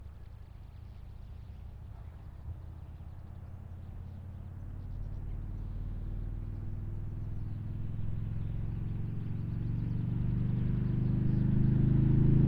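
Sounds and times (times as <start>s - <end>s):
distant 2004 Harley Davidson Night Train motorcycle starting and pulling away on ramps: 6.3s - 12.4s.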